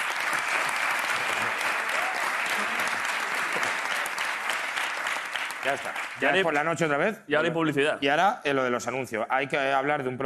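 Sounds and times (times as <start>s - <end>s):
applause: 0.0s - 6.8s
speech: 5.6s - 10.2s.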